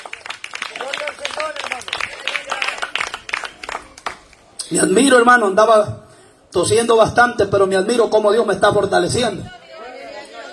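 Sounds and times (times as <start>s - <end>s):
audience applause: 0.0s - 4.4s
speech: 4.7s - 9.6s.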